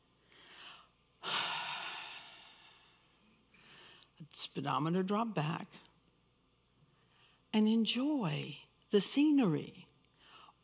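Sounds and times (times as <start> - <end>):
slow deep breath: 0.2 - 4.2, 6.8 - 7.5, 10.1 - 10.6
speech: 4.2 - 5.9, 7.6 - 9.9.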